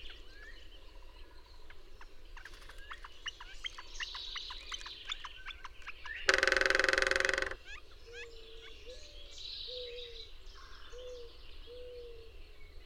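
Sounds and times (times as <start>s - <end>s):
bird song: 0.0s - 12.8s.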